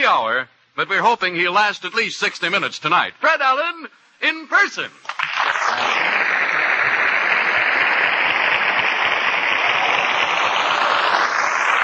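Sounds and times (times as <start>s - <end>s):
speech: 0.1s - 5.8s
audience applause: 5.1s - 11.8s.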